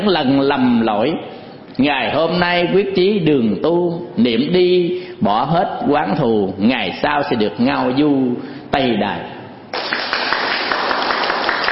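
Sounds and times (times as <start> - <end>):
speech: 0.0 - 9.3
Buddhist audience applause at the close of a dharma talk: 9.8 - 11.6.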